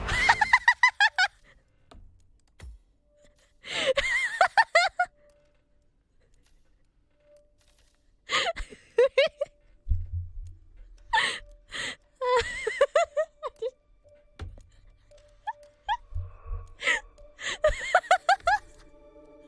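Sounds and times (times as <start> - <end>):
person laughing: 0.1 - 1.4, 3.7 - 5.1, 8.3 - 9.6, 12.2 - 13.8, 16.8 - 18.8.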